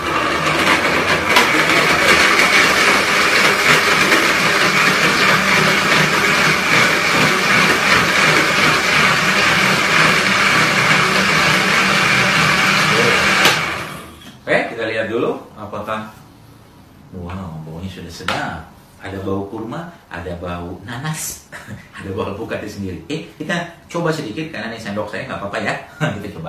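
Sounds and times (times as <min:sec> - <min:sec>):
blender blending fruit juice: 0:00.0 - 0:14.3
speech: 0:17.2 - 0:26.4.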